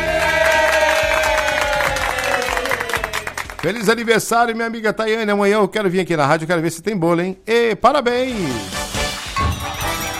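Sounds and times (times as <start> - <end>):
applause and cheering: 0.0 - 4.1
speech: 3.6 - 8.8.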